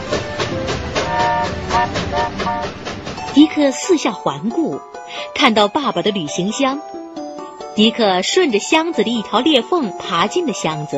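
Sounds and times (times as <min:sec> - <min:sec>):
rhythmic clickety-clack of wheels: 0:00.0 - 0:04.1
train running along the tracks: 0:00.0 - 0:06.3
faint metallic whining tones: 0:01.0 - 0:02.8
speech: 0:03.4 - 0:07.0, 0:07.8 - 0:10.9.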